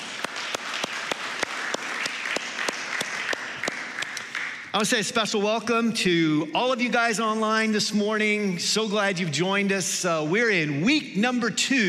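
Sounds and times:
audience at Restore applauding the staff team: 0:00.0 - 0:04.8
speech: 0:04.8 - 0:11.8.

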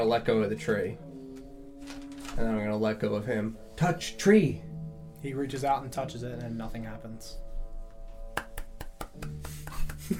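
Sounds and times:
speech: 0:00.0 - 0:01.1, 0:01.8 - 0:07.4, 0:09.2 - 0:10.1
steady tonal video game background: 0:00.0 - 0:10.1
video game character hand claps: 0:08.3 - 0:10.1.

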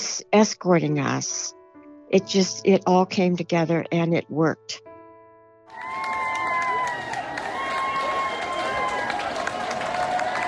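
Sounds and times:
speech: 0:00.2 - 0:04.9
crowd cheering and applauding in ovation: 0:05.7 - 0:10.4.

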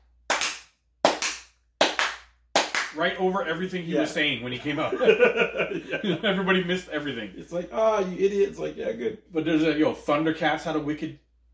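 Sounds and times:
loud hand clapping: 0:00.3 - 0:03.0
speech: 0:02.9 - 0:11.2
laughter: 0:04.4 - 0:07.2.

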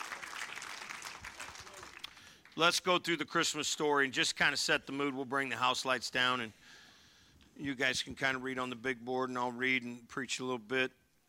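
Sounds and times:
audience applause: 0:00.0 - 0:02.6
speech: 0:02.6 - 0:06.8, 0:07.6 - 0:11.0.

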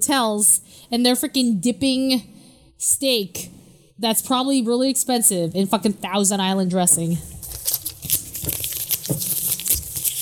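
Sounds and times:
speech: 0:00.1 - 0:07.8, 0:08.4 - 0:08.6
ripping and crunching of something being torn apart: 0:07.4 - 0:10.2.

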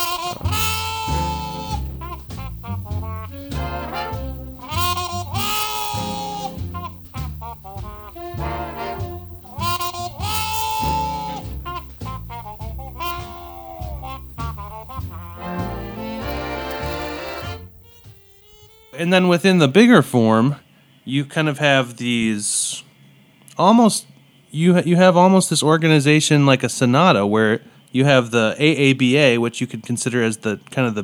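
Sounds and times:
rhythmic band chords: 0:00.0 - 0:19.4
walking bass: 0:00.0 - 0:19.6
plunger-muted trumpet growling: 0:00.0 - 0:20.0
speech: 0:19.0 - 0:22.8, 0:23.6 - 0:31.0.

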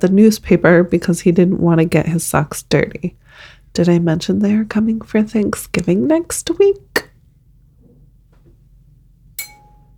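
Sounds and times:
speech: 0:00.0 - 0:06.9
low hum: 0:00.0 - 0:09.9
bell ding: 0:09.4 - 0:09.9.

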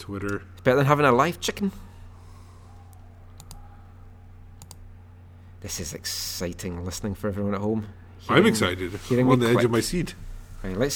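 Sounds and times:
speech: 0:00.0 - 0:01.9, 0:05.6 - 0:10.9
computer clicking while scrolling: 0:02.9 - 0:03.6, 0:04.6 - 0:04.8.

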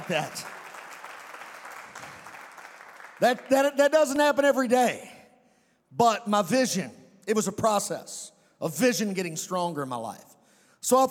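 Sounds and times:
church congregation clapping during a preacher's service: 0:00.0 - 0:04.6
speech: 0:00.1 - 0:00.6, 0:03.2 - 0:05.2, 0:05.9 - 0:11.0.

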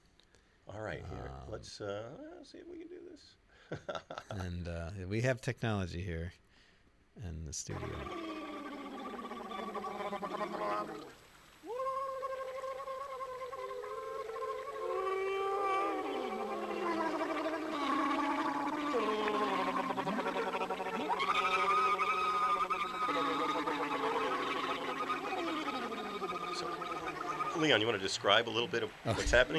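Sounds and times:
speech: 0:00.7 - 0:06.4, 0:07.2 - 0:08.3, 0:27.7 - 0:29.5
bubbly gurgles of water: 0:07.7 - 0:29.5
musicians blowing into water and bottles: 0:07.7 - 0:29.5
laughter: 0:11.7 - 0:29.5.

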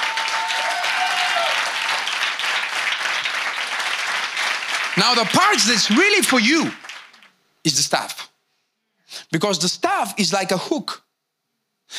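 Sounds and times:
audience applauding: 0:00.0 - 0:07.3
speech: 0:05.0 - 0:06.8, 0:07.6 - 0:08.2, 0:09.3 - 0:11.0.

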